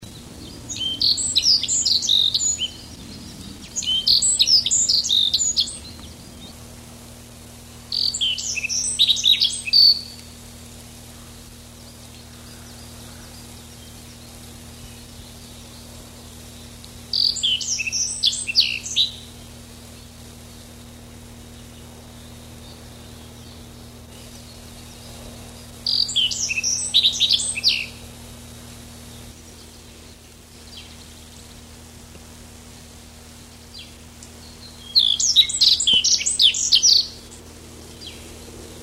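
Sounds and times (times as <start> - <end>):
E spodocephala calling: 0.0 - 6.6, 7.8 - 10.3, 12.1 - 20.1, 21.4 - 31.6, 33.6 - 38.4.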